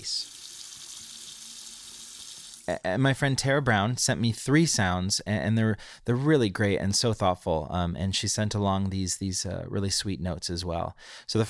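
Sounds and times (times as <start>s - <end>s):
water running from a tap to fill a bath: 0.0s - 2.8s
speech: 2.7s - 11.4s.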